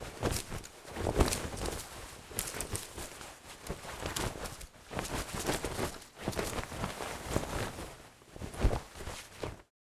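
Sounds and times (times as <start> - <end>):
clothes shorts rustling while walking: 0.0 - 9.7.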